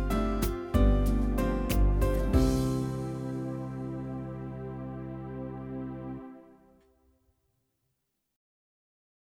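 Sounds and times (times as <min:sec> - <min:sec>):
unplugged style music: 0:00.0 - 0:06.8.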